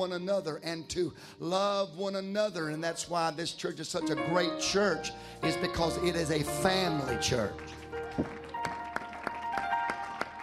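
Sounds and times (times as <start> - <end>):
speech: 0.0 - 8.4
audience clapping hands: 6.6 - 10.4.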